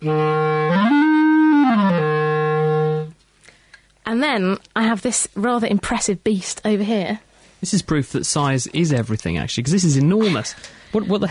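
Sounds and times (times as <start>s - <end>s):
speech: 0.0s - 0.3s, 4.2s - 11.2s
wooden B flat clarinet, about a metre long, playing notes: 0.0s - 3.2s.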